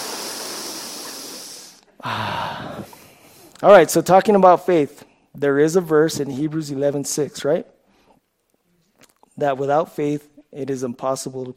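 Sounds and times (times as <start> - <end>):
speaker taking a breath during a talk on faith: 0.0 - 3.6
speech: 3.6 - 7.8, 9.4 - 11.5.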